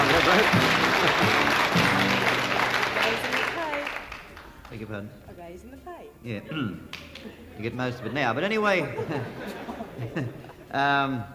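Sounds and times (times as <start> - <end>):
laughter: 0.0 - 3.3, 6.3 - 11.2
audience applause after a gospel song: 0.0 - 4.8
speech: 0.3 - 1.9, 4.8 - 11.3.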